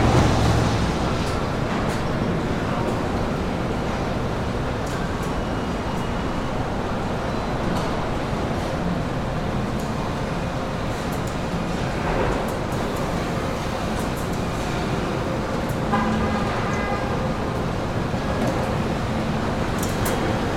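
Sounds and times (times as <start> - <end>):
assembly plant factory ambience: 0.0 - 20.5.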